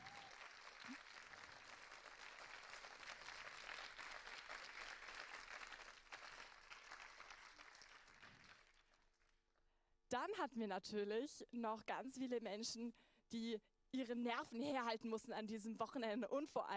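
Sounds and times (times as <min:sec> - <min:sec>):
audience applause: 0:00.0 - 0:09.1
speech: 0:00.9 - 0:01.1, 0:10.1 - 0:16.7.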